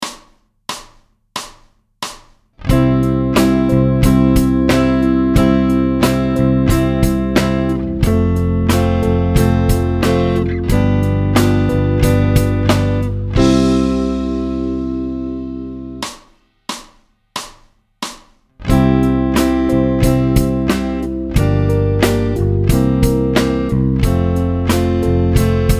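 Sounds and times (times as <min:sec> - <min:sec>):
musical chord: 0:02.7 - 0:16.0, 0:18.7 - 0:25.7.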